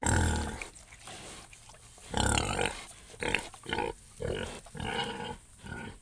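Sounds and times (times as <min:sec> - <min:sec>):
pig: 0:00.0 - 0:05.9.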